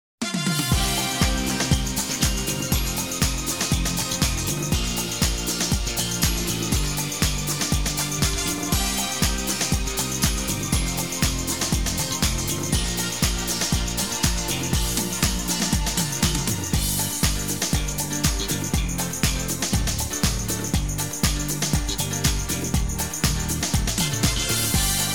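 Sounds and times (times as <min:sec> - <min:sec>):
samba music: 0:00.2 - 0:25.1.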